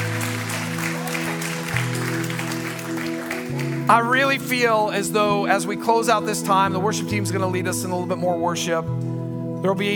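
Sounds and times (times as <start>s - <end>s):
audience applause: 0.0s - 4.4s
low keyboard chords: 0.0s - 9.9s
speech: 3.9s - 9.9s.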